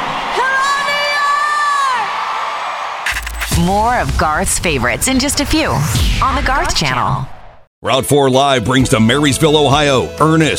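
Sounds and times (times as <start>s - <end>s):
crowd cheering at a concert at Yankee Stadium: 0.0s - 5.5s
speech: 3.6s - 10.5s.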